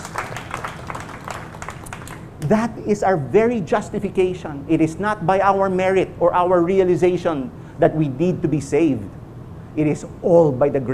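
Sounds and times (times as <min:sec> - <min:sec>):
applause: 0:00.0 - 0:02.3
speech: 0:02.4 - 0:09.2, 0:09.8 - 0:10.9.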